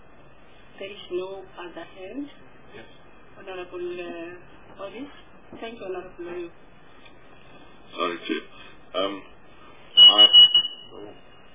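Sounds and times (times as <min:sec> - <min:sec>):
speech: 0:00.8 - 0:06.7, 0:07.9 - 0:09.3, 0:10.1 - 0:11.2
bell or buzzer ringing: 0:10.0 - 0:11.0.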